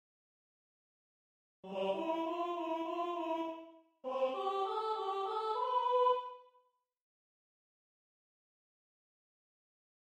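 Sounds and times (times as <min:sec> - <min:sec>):
soprano singing: 0:01.7 - 0:06.4.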